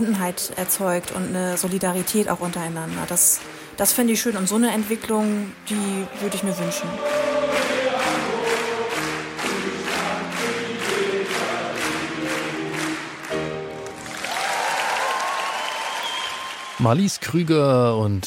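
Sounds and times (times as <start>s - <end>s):
large audience applause in concert hall: 0.0s - 4.1s, 6.0s - 18.2s
speech: 0.0s - 7.8s, 16.8s - 18.2s
rhythmic musical passage: 0.0s - 14.3s.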